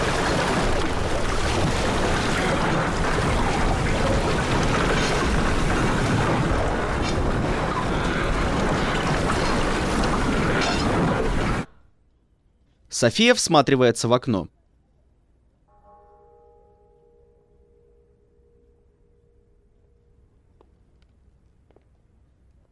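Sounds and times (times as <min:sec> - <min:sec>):
water flooding a ship's cabin: 0:00.0 - 0:11.7
speech: 0:13.0 - 0:14.6.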